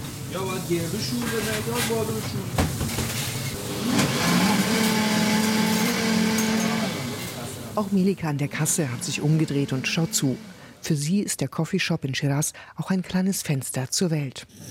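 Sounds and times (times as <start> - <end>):
speech: 0.3 - 2.9, 7.8 - 14.6
kitchen blender mixing pesto: 3.6 - 10.8.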